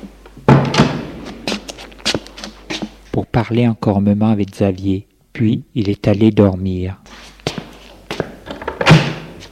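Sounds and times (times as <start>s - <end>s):
connecting door being opened: 0.4s - 1.5s, 8.5s - 9.4s
speech: 3.4s - 7.1s.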